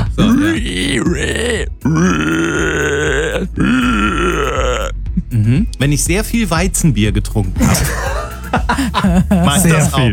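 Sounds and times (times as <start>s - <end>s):
speech: 0.2s - 2.4s, 5.8s - 10.1s
voice imitating a screaming wild boar: 0.2s - 5.0s
laughter: 7.6s - 10.1s.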